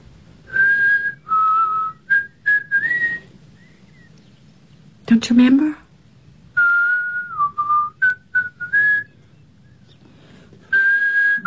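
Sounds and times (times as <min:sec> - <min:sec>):
person whistling a short clear tune alone: 0:00.5 - 0:03.3, 0:06.6 - 0:09.2, 0:10.7 - 0:11.4
speech: 0:05.1 - 0:05.8.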